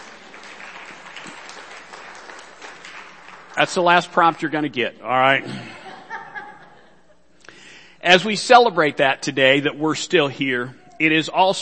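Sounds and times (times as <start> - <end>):
audience applause: 0.0 - 4.6
speech: 3.6 - 5.8, 8.0 - 11.6
laughter: 5.4 - 7.3.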